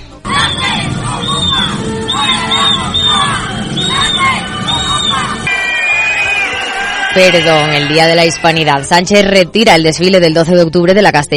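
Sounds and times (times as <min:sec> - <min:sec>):
large crowd shouting and jeering: 0:00.2 - 0:09.1
crowd shrill whistles: 0:00.4 - 0:08.7
speech: 0:07.2 - 0:11.3.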